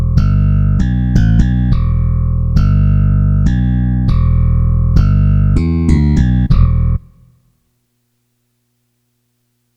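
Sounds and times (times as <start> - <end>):
bass: 0.0 - 7.5.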